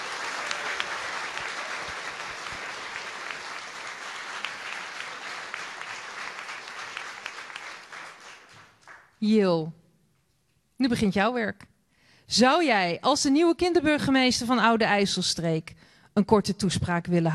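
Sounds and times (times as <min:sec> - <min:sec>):
audience applause: 0:00.0 - 0:09.2
speech: 0:09.2 - 0:09.8, 0:10.8 - 0:11.7, 0:12.3 - 0:17.3.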